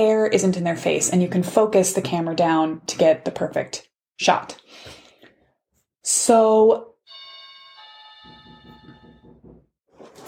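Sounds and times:
speech: 0.0s - 5.0s, 6.0s - 6.9s
doorbell chime: 7.1s - 9.6s.

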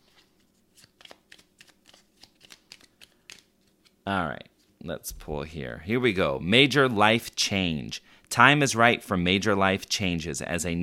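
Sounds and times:
tarot cards being shuffled for a reading: 0.0s - 4.0s
speech: 4.1s - 10.8s.

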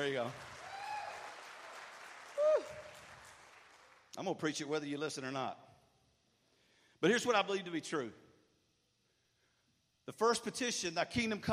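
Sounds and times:
speech: 0.0s - 0.5s, 4.2s - 5.7s, 7.0s - 8.2s, 10.1s - 11.5s
audience clapping: 0.0s - 4.3s.

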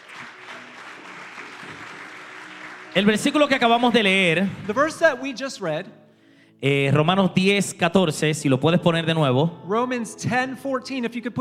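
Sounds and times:
audience applause: 0.0s - 5.1s
speech: 3.0s - 6.0s, 6.6s - 11.3s.

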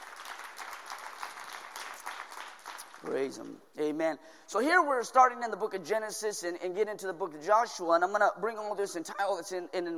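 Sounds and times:
audience clapping: 0.0s - 3.6s
speech: 3.0s - 9.9s.

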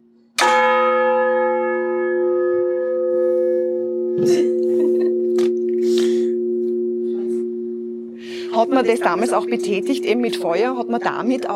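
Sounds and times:
rope-pulled bell in clock tower: 0.4s - 11.5s
speech: 4.2s - 4.7s, 8.6s - 11.5s
laughter: 4.2s - 5.4s, 8.5s - 9.9s.

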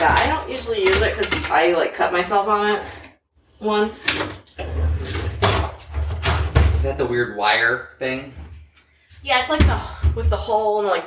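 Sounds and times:
speech: 0.0s - 3.0s, 3.6s - 4.4s, 6.8s - 8.4s, 9.2s - 11.0s
kitchen gadget drawer sliding open: 4.0s - 6.9s.

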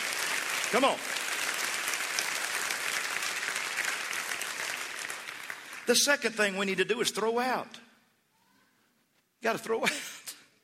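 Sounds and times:
audience clapping: 0.0s - 6.6s
speech: 0.7s - 1.2s, 5.9s - 7.8s, 9.4s - 10.1s.

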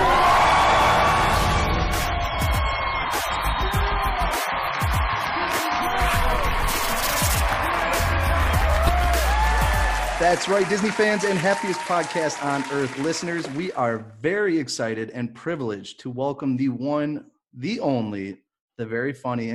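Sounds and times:
high whoops and shouts: 0.0s - 13.6s
large convention crowd cheering: 0.0s - 14.0s
speech: 10.2s - 19.5s.

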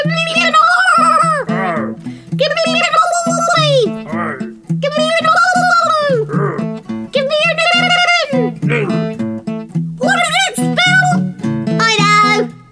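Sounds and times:
person imitating dolphin calls: 0.0s - 9.2s, 10.0s - 12.5s.

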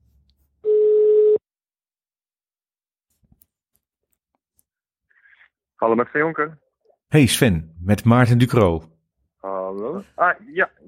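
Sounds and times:
telephone ringback tone: 0.6s - 1.4s
speech: 5.8s - 10.8s.

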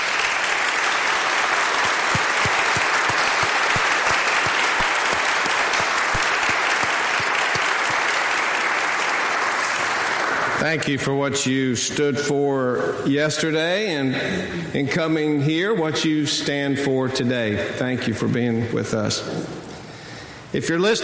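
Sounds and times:
audience applause welcoming students: 0.0s - 10.6s
speech: 10.6s - 19.6s, 20.5s - 21.0s.

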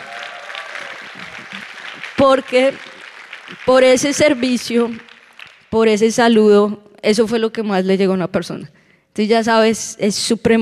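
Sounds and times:
audience applause: 0.0s - 5.7s
speech: 2.2s - 2.9s, 3.5s - 5.1s, 5.7s - 10.6s.

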